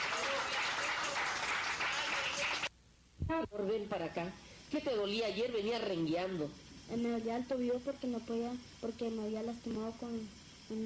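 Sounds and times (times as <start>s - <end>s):
audience applause: 0.0s - 2.7s
speech: 3.3s - 10.8s.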